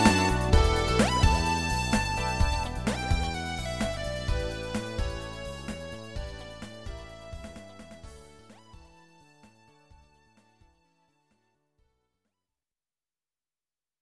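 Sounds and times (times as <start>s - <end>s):
cheerful adventure background music: 0.0s - 10.9s.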